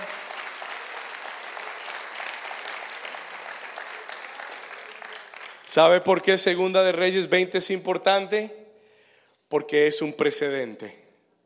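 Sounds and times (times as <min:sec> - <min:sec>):
audience applause: 0:00.0 - 0:05.8
speech: 0:05.8 - 0:08.6, 0:09.5 - 0:11.0.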